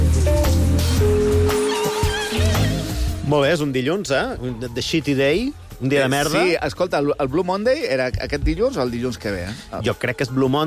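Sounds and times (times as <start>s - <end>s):
running shower water: 0.0s - 3.0s
speech: 3.3s - 10.6s.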